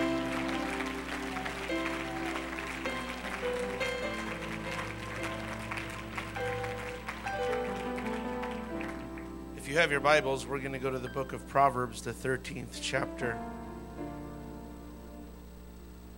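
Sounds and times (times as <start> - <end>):
audience clapping hands in praise: 0.0 - 9.9
speech: 9.8 - 13.5.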